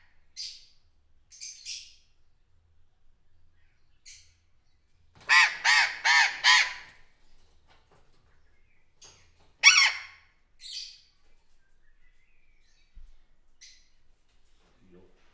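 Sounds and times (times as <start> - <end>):
burrowing parrot calling with greater vehemence at a zoo: 5.3 - 6.9, 9.6 - 10.2.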